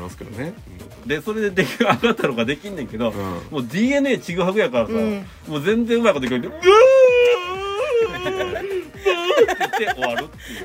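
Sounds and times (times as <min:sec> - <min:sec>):
speech: 0:00.1 - 0:06.9, 0:09.8 - 0:10.6
laughter: 0:01.6 - 0:02.5, 0:07.2 - 0:10.6
voice imitating a whimpering baby: 0:06.5 - 0:09.4.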